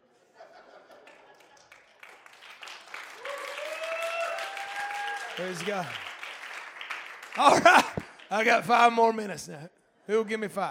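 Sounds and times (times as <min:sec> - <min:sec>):
laughter: 0:00.1 - 0:02.0, 0:07.4 - 0:08.1
audience clapping: 0:00.9 - 0:09.0
speech: 0:05.4 - 0:06.1, 0:07.4 - 0:10.6.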